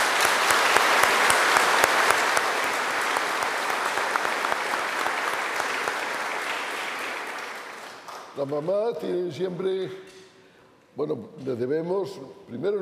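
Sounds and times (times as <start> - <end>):
applause: 0.0 - 9.2
speech: 8.4 - 10.2, 11.0 - 12.8.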